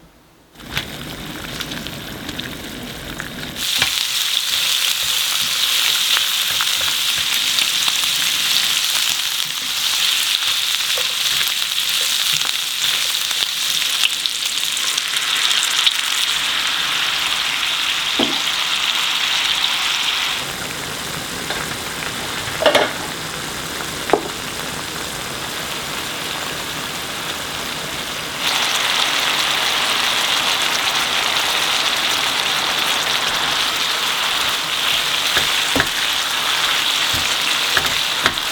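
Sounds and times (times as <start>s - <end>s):
lu rou fan sizzling in a pan: 0.5s - 38.4s
scraping and stirring lu rou fan in a pan: 3.5s - 14.1s, 32.8s - 38.4s.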